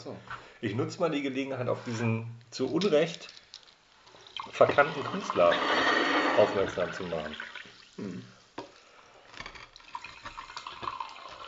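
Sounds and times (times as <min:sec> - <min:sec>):
speech: 0:00.0 - 0:03.4, 0:04.4 - 0:08.4
sparkling water from a Sodastream pouring into a glass: 0:04.2 - 0:08.1, 0:09.7 - 0:11.4.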